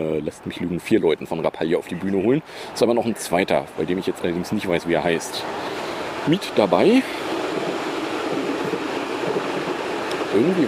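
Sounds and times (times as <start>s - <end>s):
speech: 0.0s - 7.7s, 10.3s - 10.6s
S-Bahn commuter train passing: 2.5s - 10.6s.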